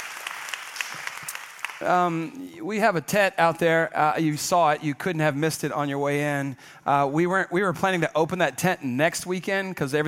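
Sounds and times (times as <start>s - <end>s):
audience applause at a Sunday church gathering: 0.0s - 2.2s
speech: 1.8s - 10.0s.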